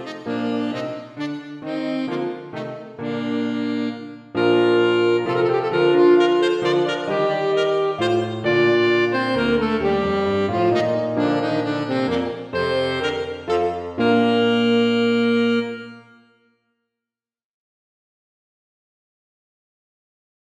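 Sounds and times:
piano playing a minuet: 0:00.0 - 0:16.4
alto saxophone playing a minuet: 0:00.0 - 0:16.6.

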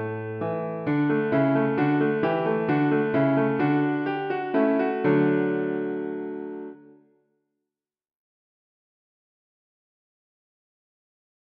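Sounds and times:
piano minuet: 0:00.0 - 0:07.0.

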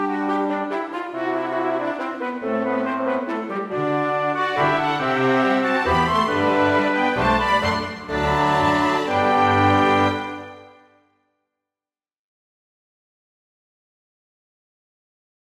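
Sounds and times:
chamber orchestra minuet: 0:00.0 - 0:10.9.

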